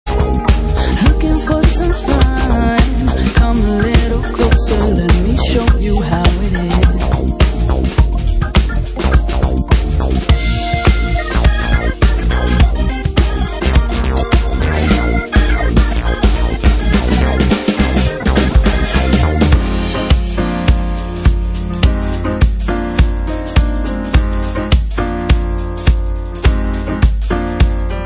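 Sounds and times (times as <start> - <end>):
embellished funk music: 0.0 - 28.0.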